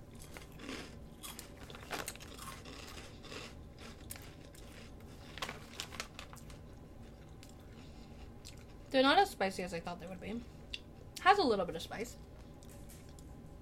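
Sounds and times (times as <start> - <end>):
people biting and crunching little spicy sriracha rice cake snacks: 0.0 - 8.8
speech: 8.9 - 10.6, 11.4 - 12.2.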